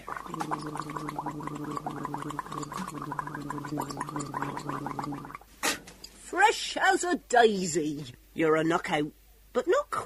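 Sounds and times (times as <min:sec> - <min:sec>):
gargling mouthwash: 0:00.0 - 0:05.5
speech: 0:00.3 - 0:05.4, 0:06.4 - 0:10.0.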